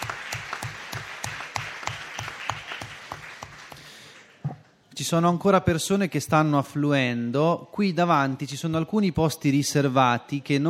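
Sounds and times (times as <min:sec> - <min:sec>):
audience applause: 0:00.0 - 0:04.4
speech: 0:05.0 - 0:10.6.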